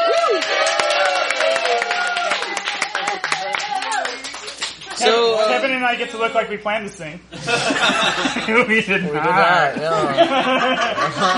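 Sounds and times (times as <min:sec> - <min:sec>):
crowd applause at a birthday celebration: 0:00.0 - 0:05.1
speech: 0:05.8 - 0:11.3
laughter: 0:07.3 - 0:11.3.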